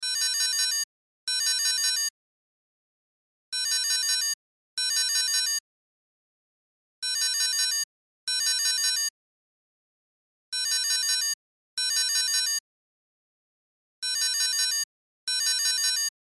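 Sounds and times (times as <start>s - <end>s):
cell phone ringtone: 0.0s - 2.2s, 3.5s - 5.6s, 7.0s - 9.2s, 10.5s - 12.6s, 14.0s - 16.2s.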